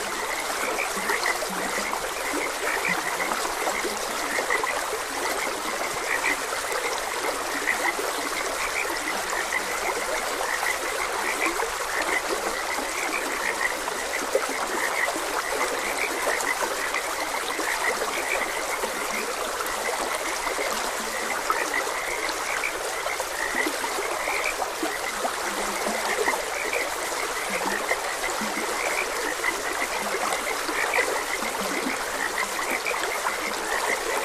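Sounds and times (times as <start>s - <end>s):
frog chorus croaking: 0.0s - 34.2s
stream rushing: 0.0s - 34.2s.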